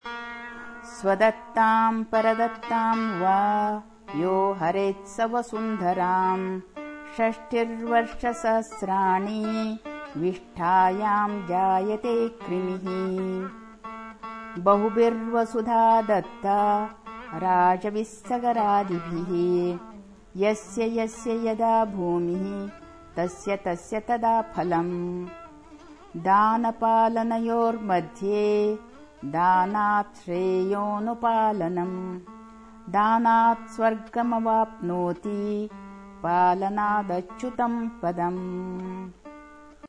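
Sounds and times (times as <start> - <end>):
sloka recitation: 0.7 - 13.7, 14.5 - 39.3.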